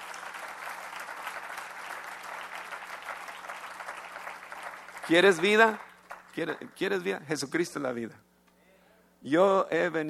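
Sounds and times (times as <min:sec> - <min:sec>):
audience applause: 0:00.0 - 0:06.7
speech: 0:05.1 - 0:08.2, 0:09.2 - 0:10.0.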